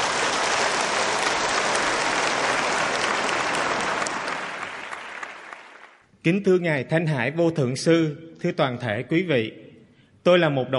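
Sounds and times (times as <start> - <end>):
warm round of applause: 0.0 - 6.0
speech: 6.2 - 9.6, 10.2 - 10.7.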